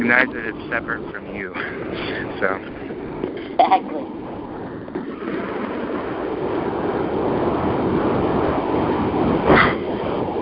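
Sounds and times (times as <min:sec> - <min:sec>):
speech: 0:00.0 - 0:04.2
wind blowing: 0:00.0 - 0:10.4.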